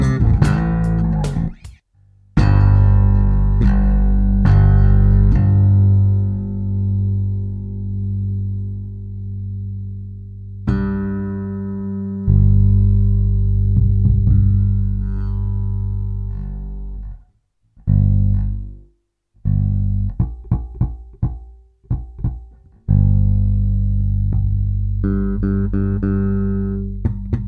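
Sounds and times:
strummed octaves in A and D: 0:00.0 - 0:01.8, 0:02.4 - 0:27.4.

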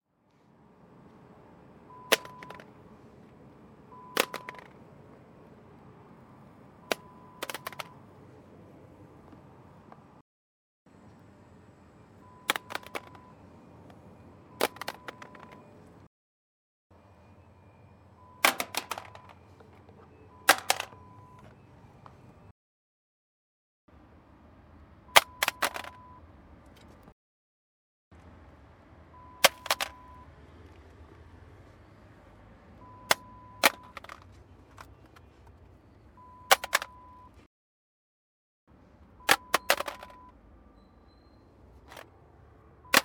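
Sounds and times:
satnav being dropped: 0:02.1 - 0:02.7, 0:04.2 - 0:04.8, 0:06.9 - 0:08.0, 0:12.5 - 0:13.2, 0:14.6 - 0:15.7, 0:18.4 - 0:19.4, 0:20.5 - 0:21.0, 0:25.2 - 0:26.0, 0:29.4 - 0:30.1, 0:33.1 - 0:35.0, 0:36.5 - 0:37.0, 0:39.3 - 0:40.2.

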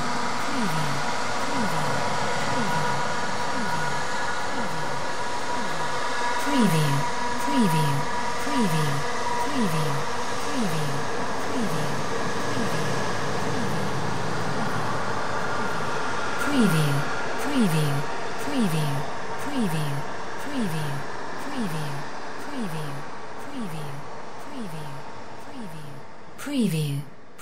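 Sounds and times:
drone: 0:00.0 - 0:27.1.

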